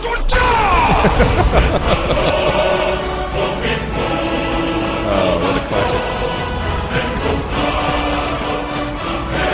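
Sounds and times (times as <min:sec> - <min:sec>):
video game shouted power-word blast: 0:00.0 - 0:01.2
roaring rumbling wash: 0:00.5 - 0:09.4
laughter: 0:00.7 - 0:03.1, 0:05.1 - 0:08.7
speech: 0:01.0 - 0:02.6.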